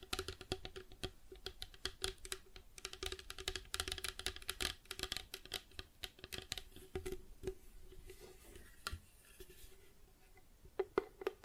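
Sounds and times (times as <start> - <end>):
tapping plastic objects: 0.0 - 7.6, 10.7 - 11.4.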